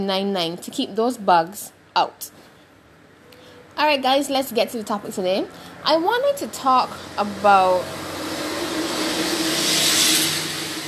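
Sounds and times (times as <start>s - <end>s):
speech: 0.0s - 2.5s, 3.8s - 8.1s
truck passing by: 5.2s - 10.8s.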